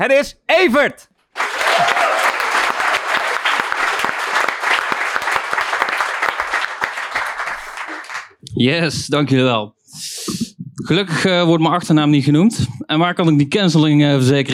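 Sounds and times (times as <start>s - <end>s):
speech: 0.0s - 1.1s, 8.6s - 10.1s, 10.9s - 14.5s
audience applause: 1.3s - 8.4s.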